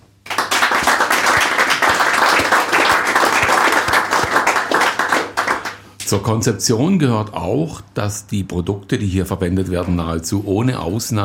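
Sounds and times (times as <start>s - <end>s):
audience applause: 0.2s - 5.8s
speech: 6.1s - 11.2s.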